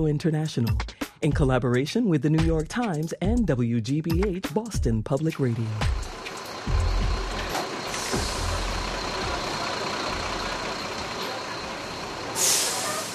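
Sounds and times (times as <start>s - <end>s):
speech: 0.0s - 6.2s
heavy buses idling: 5.4s - 13.1s
bus air brakes hissing: 6.1s - 13.1s.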